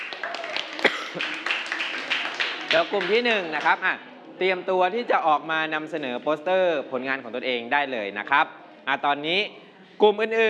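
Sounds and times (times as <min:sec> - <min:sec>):
group clapping hands: 0:00.0 - 0:03.8
speech: 0:01.2 - 0:01.4, 0:02.7 - 0:10.4.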